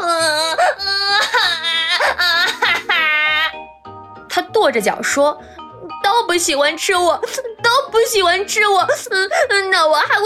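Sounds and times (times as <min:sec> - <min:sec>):
person imitating loud wailing crying for a story character: 0:00.0 - 0:03.7, 0:07.1 - 0:07.8, 0:08.8 - 0:10.2
speech: 0:04.7 - 0:05.6, 0:06.2 - 0:10.2.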